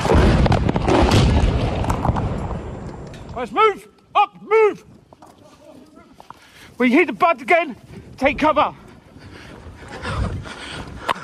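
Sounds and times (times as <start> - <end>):
explosion from bombardment in Irpin, Ukraine: 0.0 - 3.4
speech: 3.4 - 4.9, 6.8 - 8.8.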